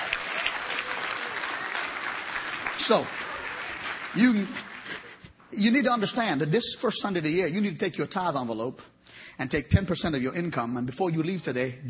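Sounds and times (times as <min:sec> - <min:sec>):
audience hand clapping: 0:00.0 - 0:05.4
speech: 0:02.9 - 0:03.2, 0:04.2 - 0:04.7, 0:05.5 - 0:11.8.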